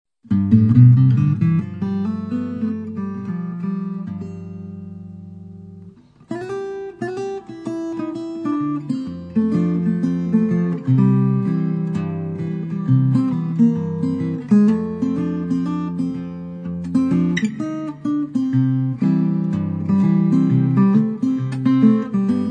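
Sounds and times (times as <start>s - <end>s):
parlor guitar: 0.2s - 22.4s.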